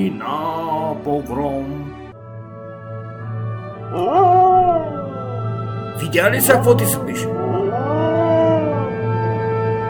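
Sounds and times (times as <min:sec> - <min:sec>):
speech: 0:00.0 - 0:02.0, 0:03.9 - 0:05.0, 0:06.0 - 0:07.9
dog howling: 0:03.9 - 0:09.8.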